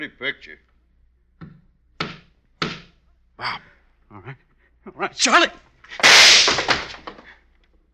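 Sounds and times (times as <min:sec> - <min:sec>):
speech: 0:00.0 - 0:00.8, 0:03.4 - 0:07.0
gunshots in a film scene: 0:06.0 - 0:07.0.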